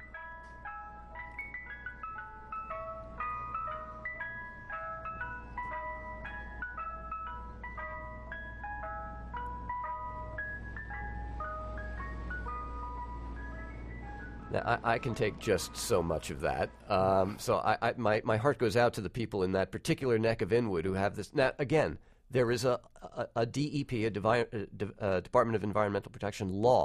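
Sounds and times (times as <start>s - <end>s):
ice cream truck music-box jingle: 0.0s - 17.5s
ice cream truck low steady engine hum: 7.5s - 17.3s
speech: 14.5s - 26.8s.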